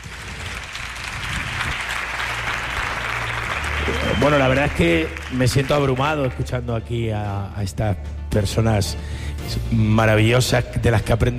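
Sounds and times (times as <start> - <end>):
audience applause: 0.0 - 6.5
speech: 4.2 - 11.3.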